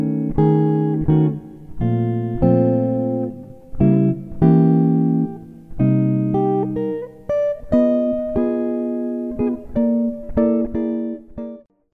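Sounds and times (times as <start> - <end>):
two guitars playing a jazz ballad: 0.0 - 11.7.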